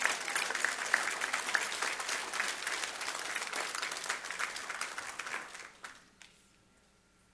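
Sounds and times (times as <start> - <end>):
audience clapping hands: 0.0 - 6.4.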